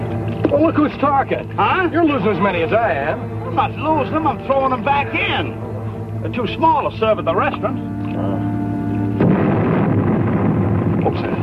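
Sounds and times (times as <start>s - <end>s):
low droning hum: 0.0s - 11.4s
speech: 0.5s - 8.5s, 11.1s - 11.4s
road crew explosive blast near a bend: 9.2s - 11.4s.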